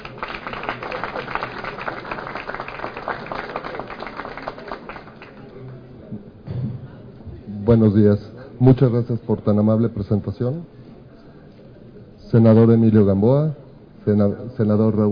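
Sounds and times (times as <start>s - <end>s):
audience applause: 0.0s - 5.8s
speech: 7.7s - 10.8s, 12.3s - 15.1s.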